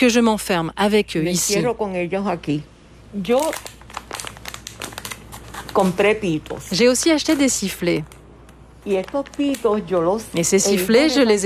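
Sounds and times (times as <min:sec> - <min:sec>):
speech: 0:00.0 - 0:04.3, 0:05.7 - 0:08.2, 0:08.8 - 0:11.4
crinkling plastic packaging being opened: 0:03.2 - 0:10.4.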